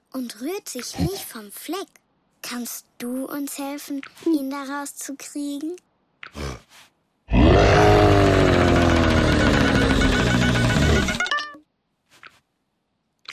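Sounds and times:
speech: 0.2s - 6.5s
lion roaring: 7.3s - 11.2s.

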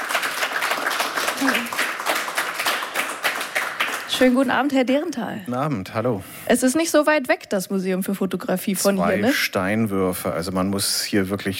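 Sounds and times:
audience applause: 0.0s - 4.7s
speech: 1.4s - 1.8s, 4.2s - 11.5s.

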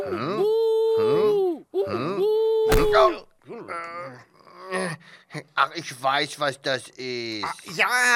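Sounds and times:
thinner higher whimpering wail: 0.0s - 3.2s
voice imitating the groaning of an Egyptian mummy in an audio drama: 0.0s - 5.0s
speech: 3.0s - 8.1s.

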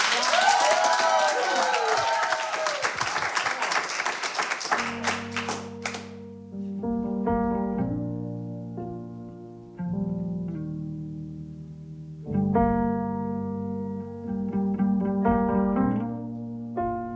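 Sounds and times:
crowd clapping and cheering with whoops: 0.0s - 6.2s
sustained keyboard chords of a song: 4.7s - 17.1s.

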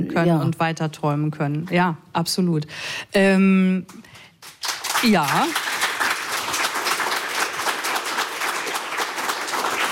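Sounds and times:
speech: 0.0s - 4.2s, 5.0s - 5.7s
crowd applause: 4.6s - 9.9s.

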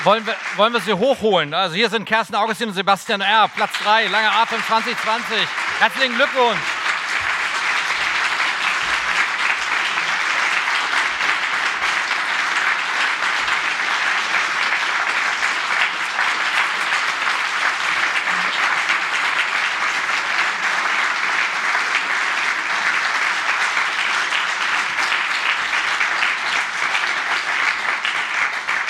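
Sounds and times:
speech: 0.0s - 6.8s
audience applause: 0.0s - 28.8s.

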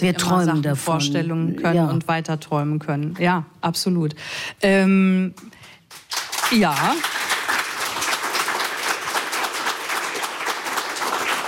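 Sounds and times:
speech: 0.0s - 5.6s, 6.5s - 7.2s
applause sound effect: 5.9s - 11.4s.

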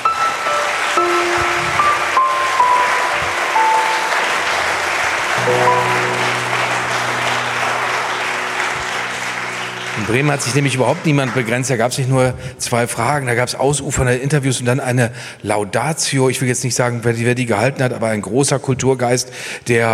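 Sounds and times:
audience applause: 0.0s - 12.4s
speech: 10.1s - 19.9s.

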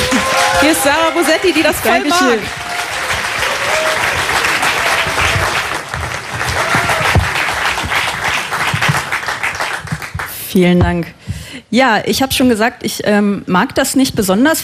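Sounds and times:
audience applause: 0.0s - 10.4s
speech: 0.8s - 2.6s, 10.5s - 14.6s.

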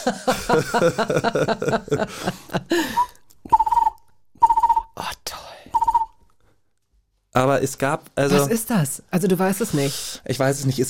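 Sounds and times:
laughter: 0.0s - 3.1s
speech: 0.0s - 3.1s, 7.4s - 10.8s
person imitating a bird call: 3.5s - 5.0s, 5.8s - 6.1s.

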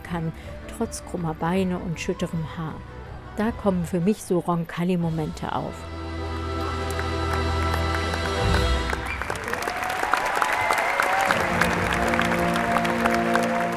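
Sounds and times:
speech: 0.1s - 6.0s
circus audience cheering and applauding at Roncalli Christmas circus, Tempodrom Berlin: 6.8s - 13.7s.

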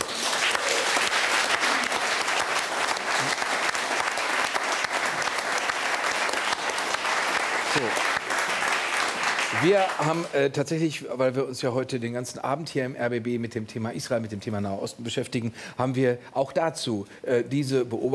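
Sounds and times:
large audience applause: 0.0s - 10.3s
speech: 9.6s - 18.1s.

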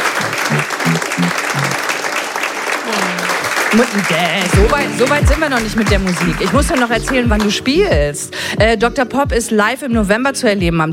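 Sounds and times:
thunderous applause: 0.0s - 7.7s
speech: 3.7s - 10.9s.

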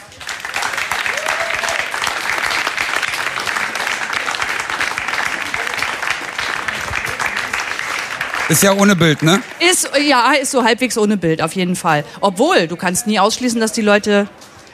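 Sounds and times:
audience applause: 0.0s - 10.3s
speech: 8.5s - 14.4s.

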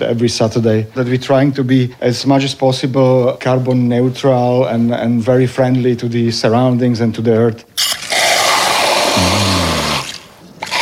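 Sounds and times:
speech: 0.0s - 8.0s
soda water squirting from a bottle: 7.8s - 10.8s.

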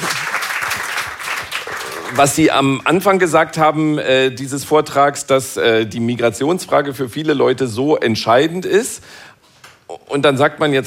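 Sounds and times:
audience applause: 0.0s - 2.5s
speech: 2.1s - 9.3s, 9.9s - 10.8s.

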